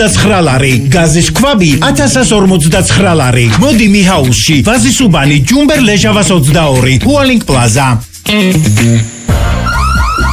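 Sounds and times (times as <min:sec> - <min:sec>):
speech: 0:00.0 - 0:09.2
electronic alarm siren: 0:08.7 - 0:10.3.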